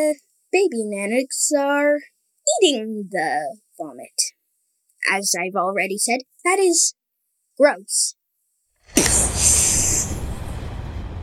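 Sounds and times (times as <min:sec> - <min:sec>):
speech: 0:00.0 - 0:04.4, 0:05.0 - 0:07.0, 0:07.6 - 0:08.2, 0:08.9 - 0:10.2
thunderclap: 0:08.9 - 0:11.2.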